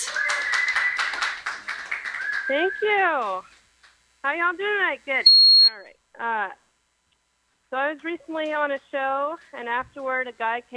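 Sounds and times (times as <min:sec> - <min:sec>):
audience applause: 0:00.0 - 0:02.6
speech: 0:02.5 - 0:03.5, 0:04.2 - 0:06.6, 0:07.7 - 0:10.7.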